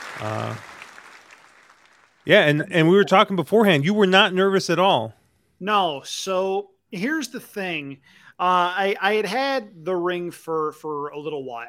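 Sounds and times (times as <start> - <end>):
applause: 0.0 - 3.1
speech: 0.2 - 0.7, 2.2 - 11.6.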